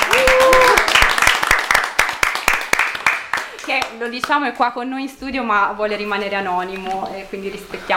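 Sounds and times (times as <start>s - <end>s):
studio audience applause: 0.0s - 3.9s
speech: 3.8s - 7.9s.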